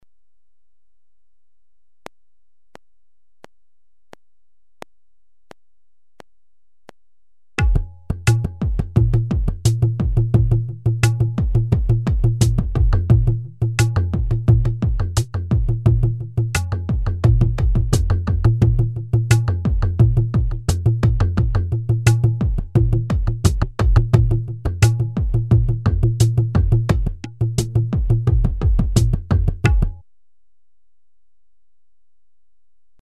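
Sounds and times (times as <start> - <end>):
drums: 7.6 - 30.0.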